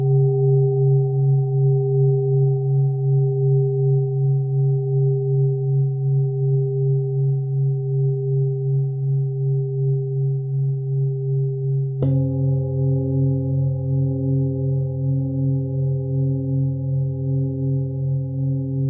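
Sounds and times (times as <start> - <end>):
Tibetan singing bowls harmonic tone: 0.0 - 18.8.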